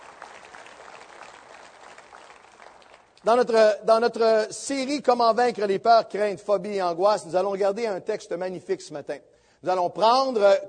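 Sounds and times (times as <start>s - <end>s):
audience applause: 0.0s - 3.2s
speech: 3.2s - 10.6s.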